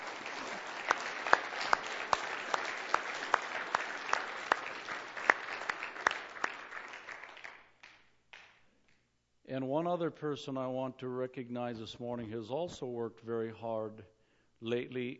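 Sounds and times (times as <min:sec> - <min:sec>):
audience applause: 0:00.0 - 0:07.7
speech: 0:09.6 - 0:15.1.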